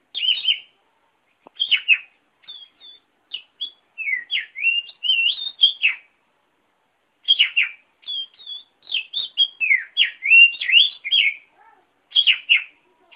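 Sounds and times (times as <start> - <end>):
oriental magpie-robin song: 0.1 - 0.7, 1.6 - 6.1, 7.3 - 11.5, 12.1 - 13.1.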